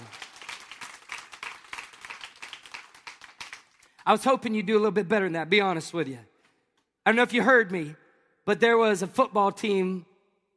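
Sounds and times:
audience clapping: 0:00.0 - 0:04.0
speech: 0:04.0 - 0:06.3, 0:07.1 - 0:10.1.

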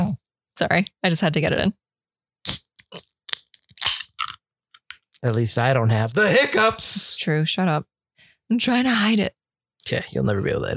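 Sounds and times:
speech: 0:00.6 - 0:01.8, 0:05.2 - 0:07.9, 0:08.5 - 0:10.7
beer can being cracked open: 0:02.5 - 0:05.0.

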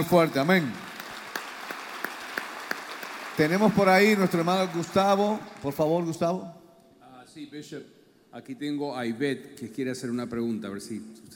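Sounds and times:
speech: 0:00.0 - 0:00.8, 0:03.4 - 0:06.6, 0:07.4 - 0:11.3
audience clapping: 0:00.0 - 0:06.2.

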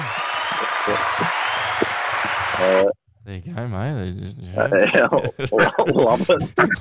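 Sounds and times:
laughter: 0:00.0 - 0:02.9, 0:03.6 - 0:06.7
soundboard applause sound effect: 0:00.0 - 0:02.9
low murmuring voices: 0:00.0 - 0:06.7
speech: 0:00.6 - 0:01.4, 0:02.6 - 0:06.7.

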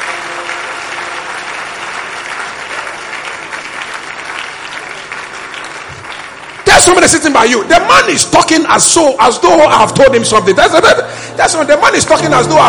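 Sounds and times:
audience clapping: 0:00.0 - 0:09.6
speech: 0:06.8 - 0:12.6.

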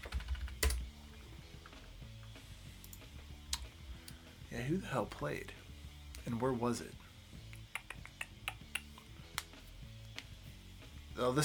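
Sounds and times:
computer keyboard typing: 0:00.0 - 0:00.8
speech: 0:04.5 - 0:05.6, 0:06.2 - 0:07.0, 0:11.2 - 0:11.4.

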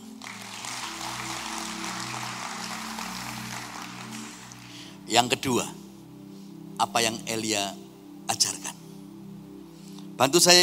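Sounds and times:
audience applause: 0:00.0 - 0:05.0
speech: 0:05.1 - 0:05.8, 0:06.8 - 0:08.8, 0:10.2 - 0:10.6.

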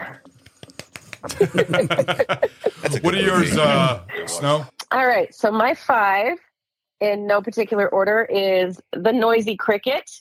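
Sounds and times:
soft golf clap: 0:00.4 - 0:01.4
laughter: 0:01.2 - 0:04.0
speech: 0:01.2 - 0:10.1.

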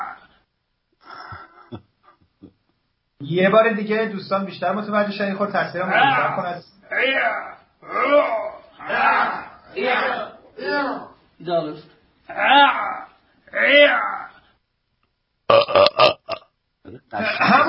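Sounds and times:
speech: 0:03.3 - 0:08.3, 0:09.9 - 0:12.9, 0:13.5 - 0:14.1
person gagging with finger down throat: 0:15.5 - 0:17.6.

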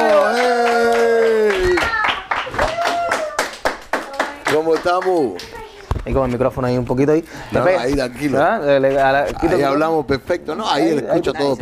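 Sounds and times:
vocal cheer: 0:00.0 - 0:03.5
rhythmic hand clapping: 0:00.0 - 0:05.6
speech: 0:04.8 - 0:11.5.

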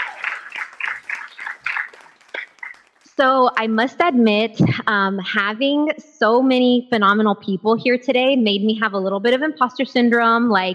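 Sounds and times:
audience round of applause: 0:00.0 - 0:03.1
speech: 0:03.2 - 0:10.7.

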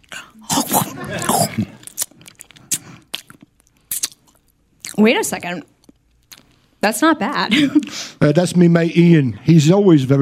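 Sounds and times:
biting and chewing a freshly cooked dish: 0:00.0 - 0:05.0, 0:05.8 - 0:06.6
laughter: 0:00.7 - 0:01.8
speech: 0:01.6 - 0:01.8, 0:05.0 - 0:05.7, 0:06.8 - 0:10.2.

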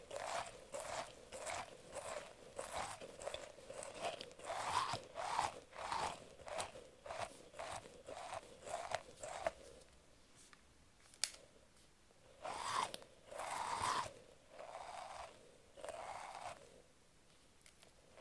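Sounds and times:
soft squishy brushing strokes on an octopus and mermaid toy: 0:00.0 - 0:10.5, 0:12.4 - 0:16.8.

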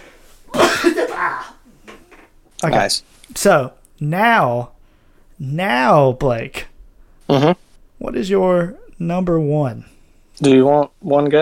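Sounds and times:
sneeze: 0:00.5 - 0:01.6
speech: 0:02.6 - 0:04.8, 0:05.4 - 0:06.6, 0:07.3 - 0:11.3.

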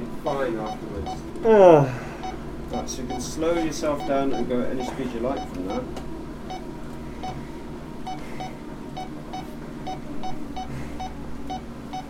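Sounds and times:
low hum: 0:00.0 - 0:12.0
speech: 0:00.2 - 0:02.1, 0:02.7 - 0:06.1
heart rate monitor beeping during heart rate recovery after an exercise bike test: 0:00.6 - 0:01.2, 0:02.2 - 0:05.8, 0:06.5 - 0:07.4, 0:08.1 - 0:12.0.

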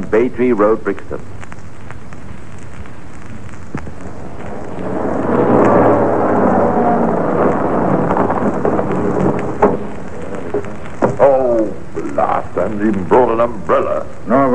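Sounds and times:
speech: 0:00.1 - 0:01.4, 0:12.8 - 0:14.5
heavy rain falling: 0:02.0 - 0:14.5
thunder: 0:03.3 - 0:12.0.

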